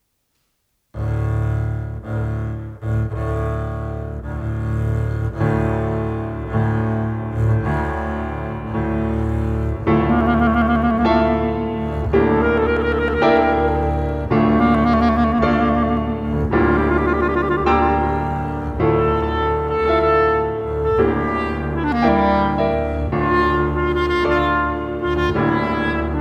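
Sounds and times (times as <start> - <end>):
instrumental music: 0.3 - 26.1.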